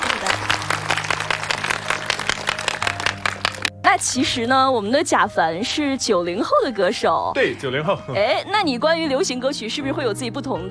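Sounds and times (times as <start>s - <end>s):
audience applause: 0.0s - 3.7s
speech: 4.0s - 10.7s.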